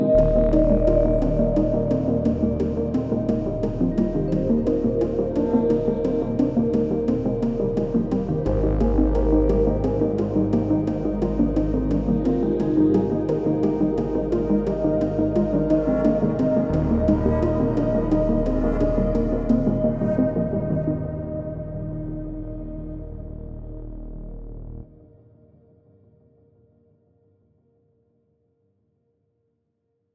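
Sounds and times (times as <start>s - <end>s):
investigative dreamy building synth pop music: 0.0s - 22.0s.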